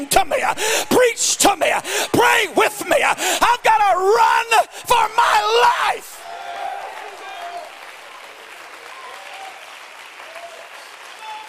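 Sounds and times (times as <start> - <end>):
speech: 0.0 - 6.0
audience clapping hands: 6.2 - 11.4.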